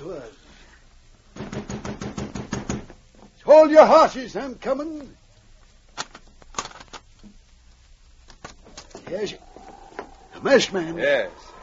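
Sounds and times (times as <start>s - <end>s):
pounding on a door: 1.4s - 3.0s
speech: 3.6s - 5.2s, 9.1s - 9.5s, 10.4s - 11.5s.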